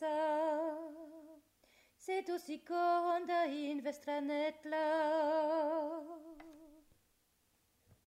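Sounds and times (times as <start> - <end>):
soprano singing: 0.0 - 1.4, 2.0 - 6.9.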